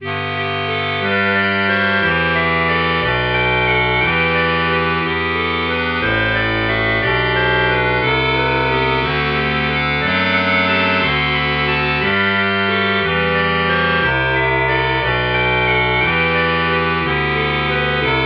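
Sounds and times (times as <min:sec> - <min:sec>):
clarinet: 0:00.0 - 0:18.2.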